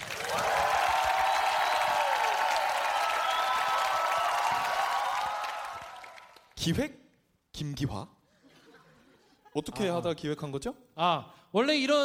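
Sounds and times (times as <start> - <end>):
audience applause: 0.0 - 6.5
speech: 6.6 - 7.0, 7.6 - 8.2, 9.6 - 12.0.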